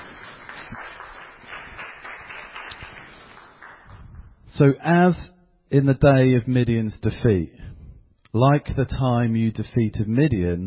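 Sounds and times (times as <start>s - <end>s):
crowd round of applause: 0.0s - 4.4s
speech: 4.6s - 7.6s, 8.3s - 10.6s.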